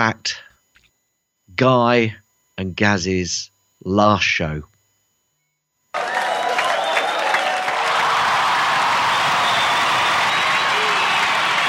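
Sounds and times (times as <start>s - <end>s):
speech: 0.0s - 0.4s, 1.6s - 4.7s
crowd cheering and applause: 6.0s - 11.6s.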